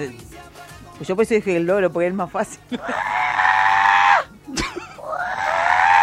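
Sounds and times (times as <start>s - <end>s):
speech: 0.0s - 3.2s
person imitating an Andean condor call: 2.8s - 4.3s, 5.0s - 6.0s.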